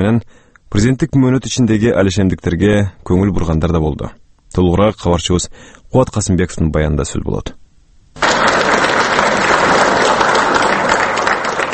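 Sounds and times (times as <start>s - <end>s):
speech: 0.0s - 7.6s
applause in the Kyrgyz parliament greeting President Roza Otunbayeva: 8.2s - 11.7s.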